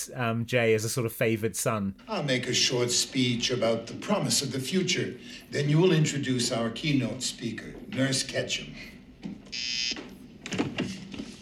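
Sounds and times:
speech: 0:00.0 - 0:10.1
buzzer: 0:09.5 - 0:10.0.

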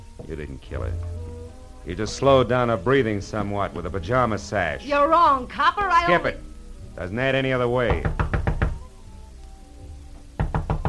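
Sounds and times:
speech: 0:00.2 - 0:01.2, 0:01.8 - 0:08.2
knocking on a door: 0:07.8 - 0:08.9, 0:10.2 - 0:10.8.

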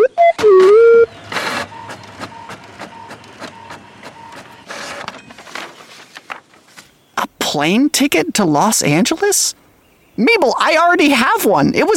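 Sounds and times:
printer printing a page: 0:00.4 - 0:06.4
speech: 0:07.6 - 0:09.6, 0:10.2 - 0:11.9.

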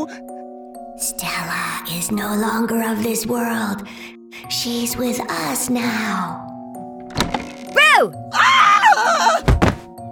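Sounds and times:
speech: 0:01.0 - 0:06.5, 0:08.0 - 0:08.4
person screaming: 0:07.8 - 0:09.4.

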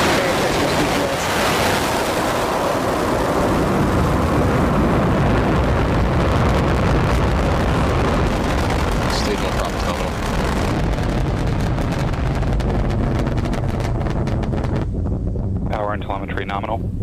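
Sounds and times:
Falcon 9 rocket liftoff from Cape Canaveral Air Force Station in Florida: 0:00.0 - 0:17.0
wind-like buffeting of a rocket launch: 0:00.0 - 0:17.0.

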